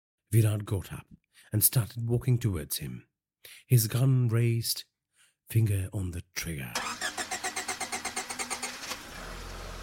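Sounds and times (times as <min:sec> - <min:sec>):
speech: 0:00.3 - 0:04.9, 0:05.5 - 0:07.0
car engine cranking without catching: 0:06.8 - 0:09.8.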